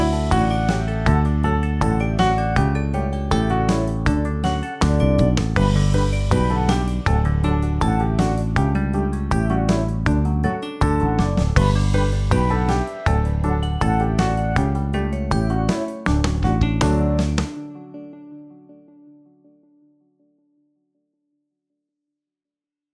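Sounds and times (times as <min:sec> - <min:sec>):
polka music: 0:00.0 - 0:17.6.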